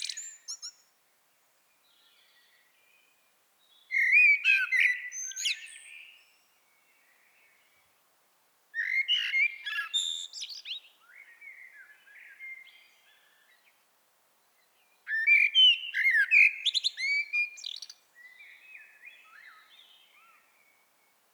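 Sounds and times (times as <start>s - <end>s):
common blackbird singing: 0.0s - 0.8s, 3.8s - 6.4s, 8.8s - 13.7s, 14.8s - 20.8s.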